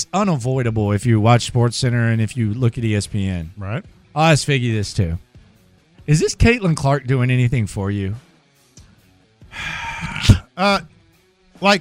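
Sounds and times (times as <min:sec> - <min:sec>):
speech: 0:00.0 - 0:05.3, 0:06.1 - 0:08.3, 0:09.5 - 0:10.9, 0:11.6 - 0:11.7
loud gasping breath: 0:09.5 - 0:10.5
short voiced exhale: 0:09.5 - 0:10.5.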